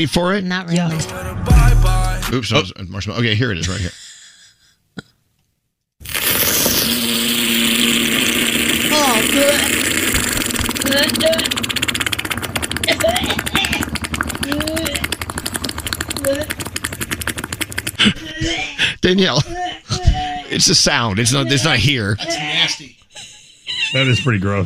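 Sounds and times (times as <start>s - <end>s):
speech: 0.0s - 4.0s, 19.1s - 19.8s, 20.5s - 22.9s, 23.9s - 24.6s
hot lava cube bubbling in a mayonnaise jar: 6.0s - 18.3s
laughter: 18.0s - 24.6s.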